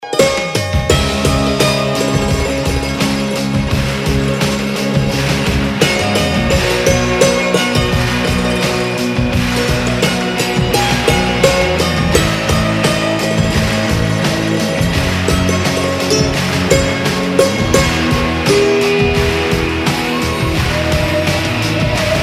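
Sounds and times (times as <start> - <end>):
instrumental music: 0.0 - 22.2.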